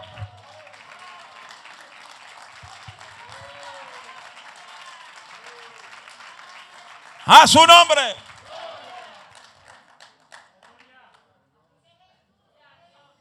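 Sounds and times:
audience applause: 0:00.0 - 0:10.0
speech: 0:07.3 - 0:08.2.

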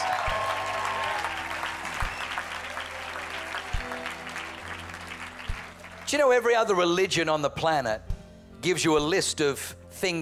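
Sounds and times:
audience applause: 0:00.0 - 0:06.5
speech: 0:06.1 - 0:10.2.

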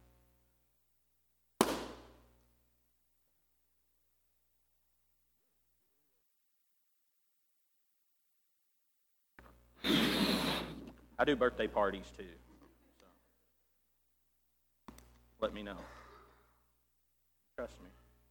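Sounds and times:
balloon popped with a safety pin: 0:01.6 - 0:02.2, 0:09.8 - 0:11.0
speech: 0:11.2 - 0:12.4, 0:15.4 - 0:16.0, 0:17.6 - 0:18.0.

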